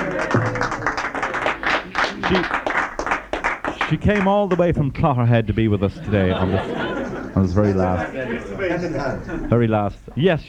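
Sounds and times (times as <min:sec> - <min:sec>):
laughter: 0:00.0 - 0:02.5, 0:05.7 - 0:09.8
round of applause: 0:00.0 - 0:04.7
speech: 0:03.9 - 0:10.4.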